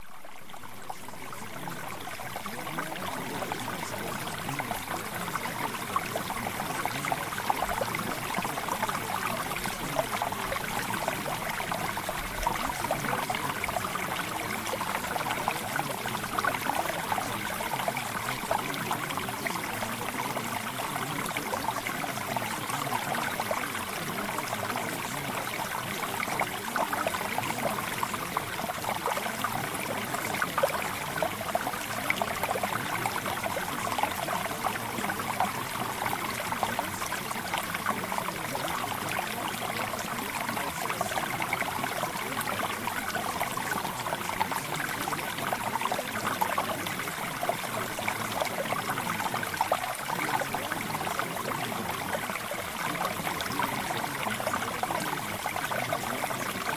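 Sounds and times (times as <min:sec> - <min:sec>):
mountain stream: 0:00.0 - 0:56.7.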